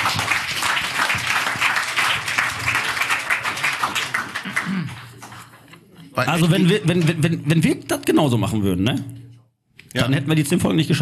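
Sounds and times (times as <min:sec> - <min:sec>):
applause: 0:00.0 - 0:05.6
speech: 0:06.2 - 0:09.2, 0:10.0 - 0:11.0.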